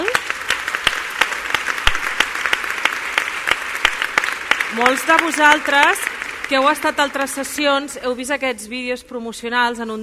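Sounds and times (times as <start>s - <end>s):
audience applause: 0.0s - 7.9s
speech: 4.8s - 10.0s.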